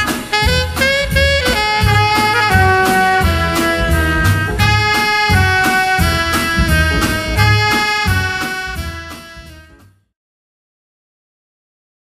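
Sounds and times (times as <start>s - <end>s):
saxophone: 0.0s - 9.8s
DJ music: 3.4s - 9.0s.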